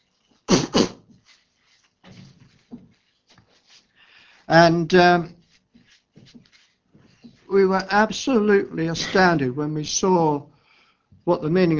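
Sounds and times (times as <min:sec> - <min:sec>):
person blowing nose: 0:00.3 - 0:01.6
speech: 0:04.5 - 0:05.4, 0:07.5 - 0:10.5, 0:11.2 - 0:11.7.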